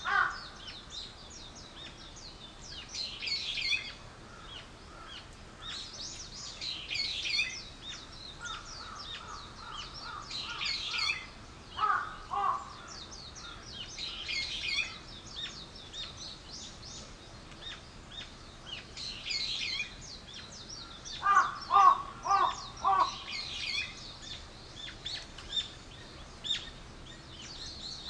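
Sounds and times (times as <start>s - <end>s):
birds chirping: 0.0s - 28.0s
harsh bird cawing: 0.1s - 0.4s, 11.8s - 13.0s, 21.2s - 23.3s.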